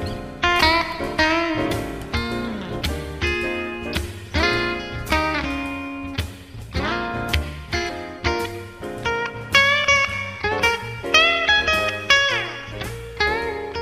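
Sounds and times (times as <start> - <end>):
clean blues electric guitar with P90 pickups through twin amp: 0.0 - 13.7.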